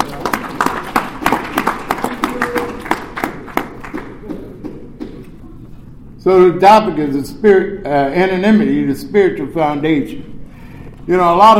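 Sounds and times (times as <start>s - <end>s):
audience hand clapping: 0.0s - 5.3s
speech: 6.3s - 10.3s, 11.1s - 11.5s.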